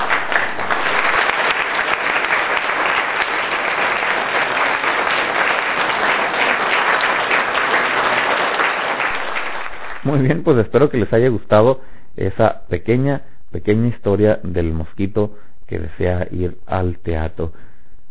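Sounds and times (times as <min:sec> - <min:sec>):
crowd applause: 0:00.0 - 0:10.5
speech: 0:10.2 - 0:17.7.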